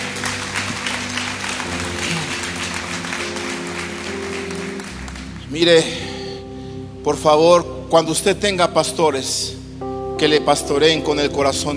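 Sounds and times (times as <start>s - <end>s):
audience applauding: 0.0s - 5.6s
speech: 5.5s - 6.0s, 7.0s - 9.6s, 10.2s - 11.7s.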